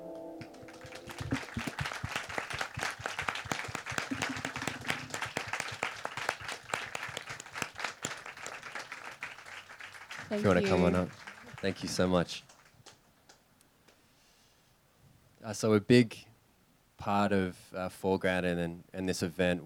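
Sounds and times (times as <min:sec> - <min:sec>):
audience applause for performers: 0:00.4 - 0:13.0
speech: 0:10.3 - 0:12.5, 0:15.5 - 0:16.3, 0:17.0 - 0:19.6.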